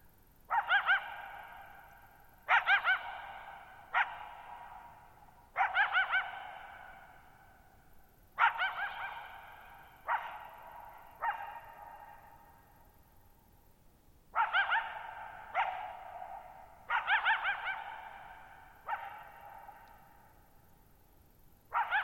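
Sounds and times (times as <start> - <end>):
coyote barking and yipping: 0.5 - 7.2, 8.4 - 12.5, 14.3 - 20.2, 21.7 - 22.0.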